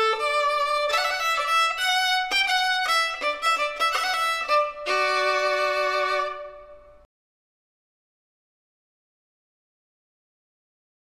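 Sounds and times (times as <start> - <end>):
violinist playing a baroque piece: 0.0 - 7.1.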